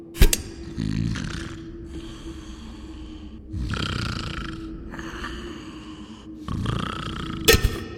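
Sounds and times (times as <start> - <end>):
voice imitating snoring of a mummy sleeping in a sarcophagus: 0.6 - 2.2, 3.5 - 7.6.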